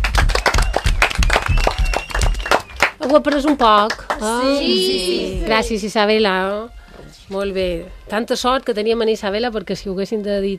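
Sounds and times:
group applauding a participant in a translation game: 0.0s - 5.2s
speech: 3.1s - 10.5s.

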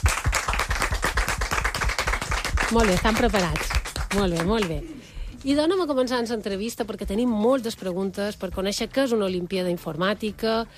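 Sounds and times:
group of children applauding: 0.0s - 4.7s
speech: 2.7s - 10.7s.

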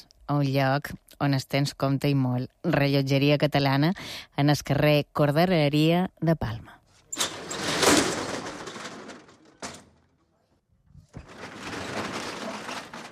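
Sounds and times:
speech: 0.0s - 6.8s
shop's metal roller shutter being raised: 7.1s - 10.2s, 11.1s - 13.1s.

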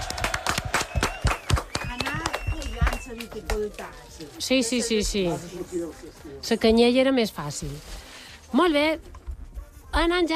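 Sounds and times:
applause for the parents: 0.0s - 4.0s
speech: 3.7s - 9.2s, 10.0s - 10.3s.

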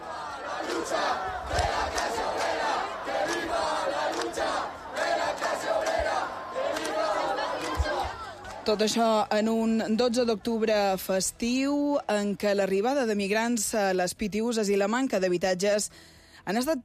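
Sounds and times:
protest crowd shouting in unison from encampment: 0.0s - 9.0s
speech: 8.7s - 16.8s.

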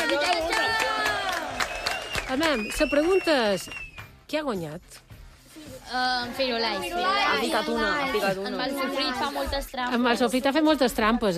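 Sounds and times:
applause: 0.0s - 4.2s
speech: 2.3s - 5.0s, 5.6s - 11.3s.

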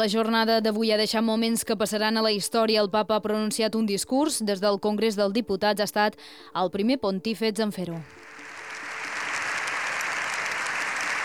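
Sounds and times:
speech: 0.0s - 8.3s
ovation applause in parliament: 8.1s - 11.2s.

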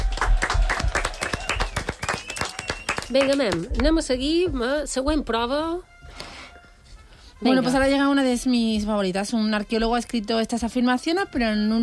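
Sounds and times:
audience clapping: 0.0s - 4.0s
speech: 3.1s - 5.9s, 7.4s - 11.8s.

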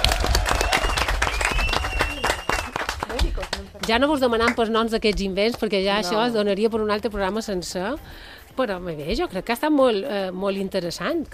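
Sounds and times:
audience applause: 0.0s - 4.6s
speech: 3.6s - 11.3s.

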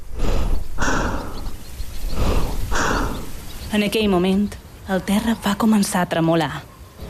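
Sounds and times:
rapid heavy breathing: 0.0s - 3.5s
speech: 3.7s - 6.7s.

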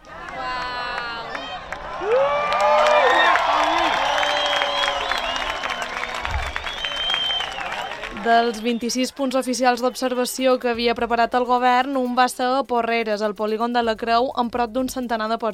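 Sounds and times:
crowd cheering and shouting at eclipse totality: 0.0s - 10.7s
clapping: 0.2s - 9.4s
speech: 8.3s - 15.5s.

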